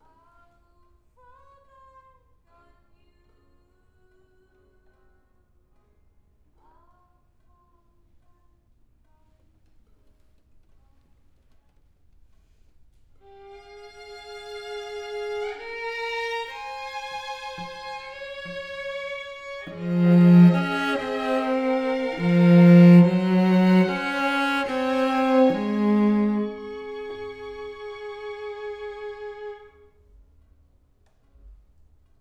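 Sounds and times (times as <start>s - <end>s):
cello: 13.3s - 29.8s.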